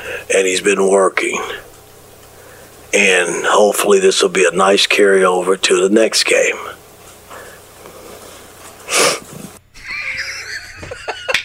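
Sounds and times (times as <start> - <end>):
speech: 0.2 - 1.7, 2.9 - 6.8
person sniffing: 8.8 - 9.6
laughter: 9.8 - 11.4.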